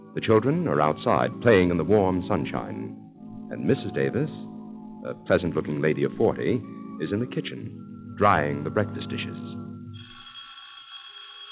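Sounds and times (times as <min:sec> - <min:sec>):
speech: 0:00.2 - 0:09.6
doorbell ringing: 0:10.0 - 0:11.5.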